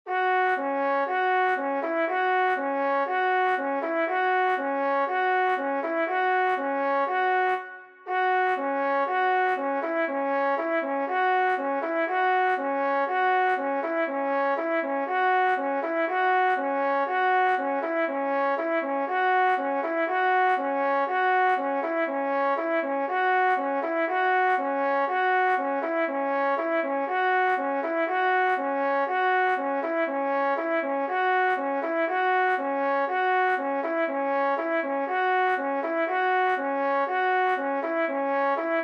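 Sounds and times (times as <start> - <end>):
trombone: 0.1 - 38.8.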